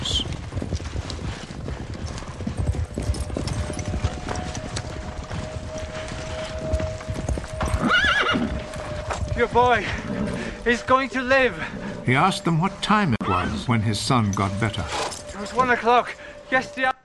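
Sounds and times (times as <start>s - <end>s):
horses riding at a brisk pace, hooves clip-clopping: 0.0s - 16.9s
horse whinnying: 7.6s - 8.7s, 13.2s - 13.8s
speech: 9.4s - 10.0s, 10.6s - 17.0s.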